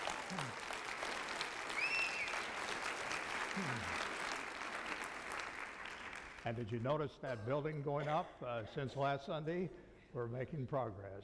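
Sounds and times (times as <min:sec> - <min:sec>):
crowd applauding: 0:00.0 - 0:06.6
brief tonal whistles or cheers: 0:01.7 - 0:02.5
speech: 0:06.4 - 0:11.2.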